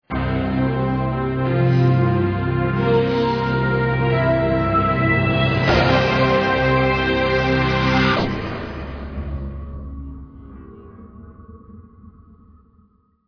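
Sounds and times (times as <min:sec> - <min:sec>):
Olympic musical stinger ident: 0:00.1 - 0:09.9.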